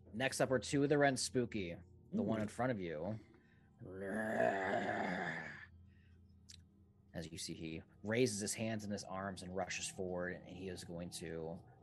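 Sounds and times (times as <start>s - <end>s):
speech: 0.2s - 5.4s, 7.2s - 11.7s
voice imitating a monster's heavy breathing as a low groaning moan: 3.8s - 5.7s.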